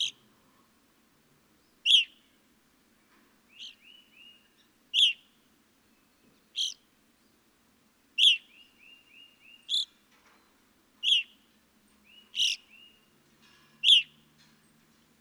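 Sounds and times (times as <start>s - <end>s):
evening grosbeak call notes: 1.9s - 2.1s, 5.0s - 5.2s, 6.6s - 6.8s, 8.2s - 8.4s, 11.0s - 11.4s, 12.2s - 13.0s, 13.8s - 14.2s.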